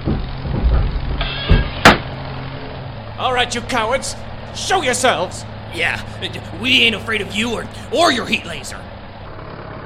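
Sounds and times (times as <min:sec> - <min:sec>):
sharp mechanical clunks: 0:00.0 - 0:02.8
tractor engine running: 0:00.0 - 0:09.8
speech: 0:03.2 - 0:08.9.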